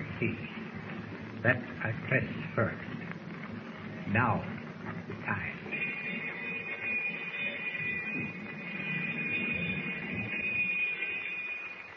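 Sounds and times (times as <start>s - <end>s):
speech: 0.2s - 0.6s, 1.4s - 3.0s, 4.1s - 5.7s
submarine alarm bell ringing: 5.7s - 11.9s.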